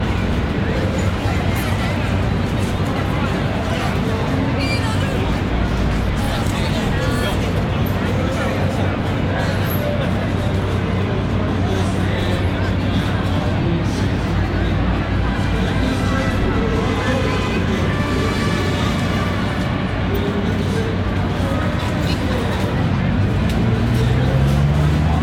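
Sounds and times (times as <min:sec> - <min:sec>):
Times Square New York ambience: 0:00.0 - 0:25.2.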